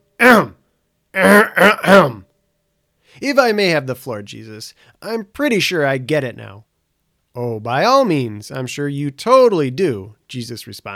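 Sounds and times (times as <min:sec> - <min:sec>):
person clearing throat: 0:00.2 - 0:00.6, 0:01.2 - 0:02.3
speech: 0:01.2 - 0:02.2, 0:03.2 - 0:06.7, 0:07.4 - 0:10.9.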